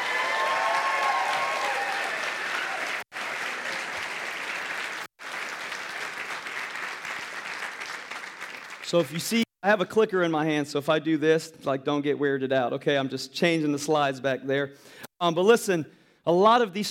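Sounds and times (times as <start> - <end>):
audience applause cheering a group of students: 0.0 - 9.5
speech: 8.9 - 16.9.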